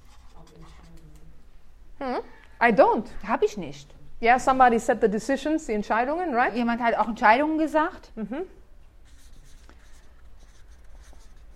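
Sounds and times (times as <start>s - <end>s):
speech: 2.0s - 8.6s
teacher writing words on a board: 9.1s - 11.5s.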